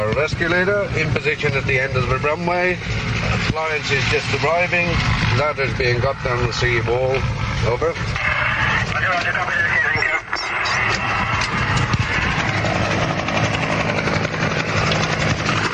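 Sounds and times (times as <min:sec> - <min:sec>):
helicopter hovering overhead: 0:00.0 - 0:15.7
speech: 0:00.2 - 0:08.4, 0:09.0 - 0:10.0
indistinct voices: 0:05.4 - 0:13.5.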